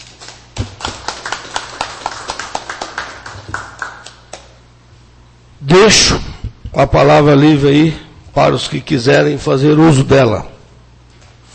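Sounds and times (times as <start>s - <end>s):
applause: 0.6s - 4.6s
speech: 5.7s - 10.5s.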